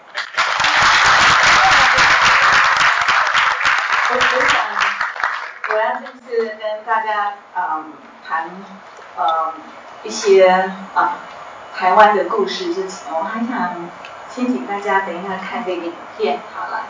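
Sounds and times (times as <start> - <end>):
audience applause and cheering: 0.0 - 5.8
speech: 5.8 - 16.8.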